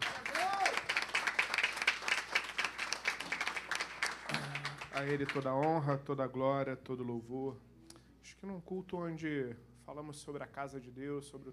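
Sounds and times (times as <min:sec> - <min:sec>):
audience applause: 0:00.0 - 0:05.5
speech: 0:05.0 - 0:07.7, 0:08.4 - 0:11.5.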